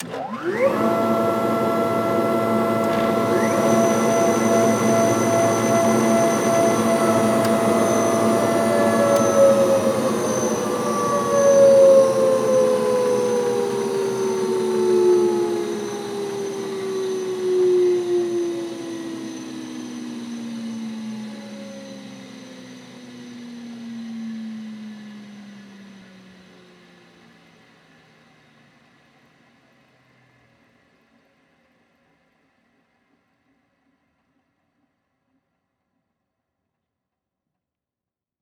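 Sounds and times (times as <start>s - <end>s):
machine floor sander turning on, running and turning off: 0.0s - 24.9s.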